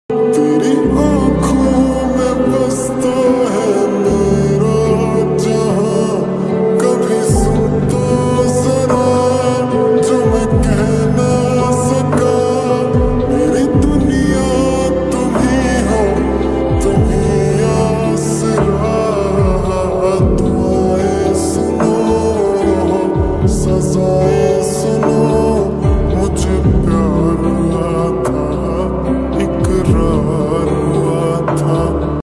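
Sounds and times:
slowed reverb Hindi sad lofi song: 0.1 - 32.2.

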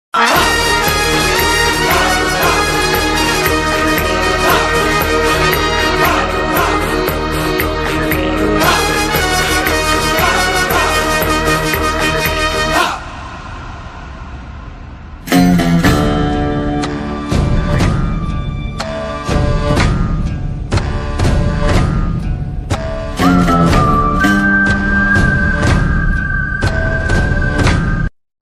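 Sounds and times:
background music ringtone: 0.2 - 28.1.

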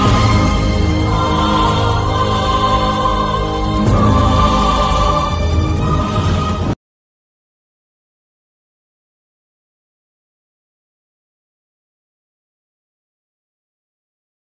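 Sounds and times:
interval background music: 0.0 - 6.8.

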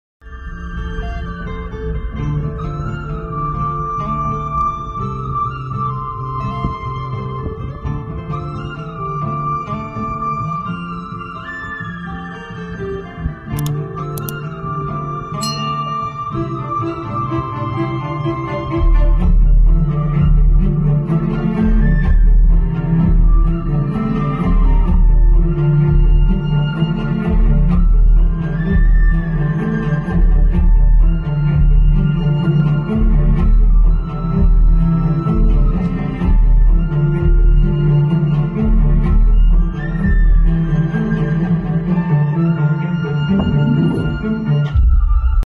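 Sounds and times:
sad background music ringtone: 0.2 - 45.4.

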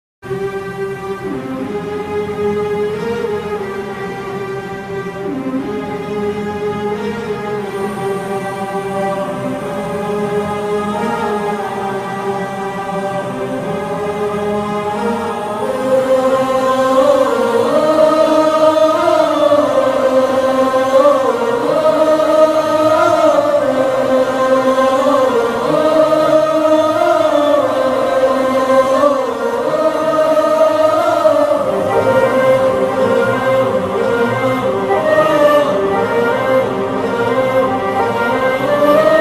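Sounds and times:
climactic background music: 0.3 - 39.1.

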